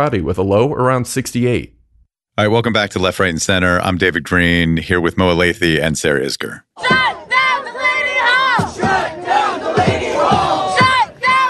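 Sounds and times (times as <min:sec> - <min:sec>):
speech: 0:00.0 - 0:01.8, 0:02.4 - 0:07.0
protesters chanting outside Delaney Hall ICE detention center in Newark, New Jersey: 0:06.8 - 0:11.4.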